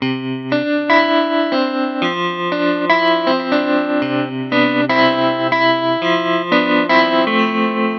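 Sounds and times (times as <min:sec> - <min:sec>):
guitar: 0:00.0 - 0:07.9.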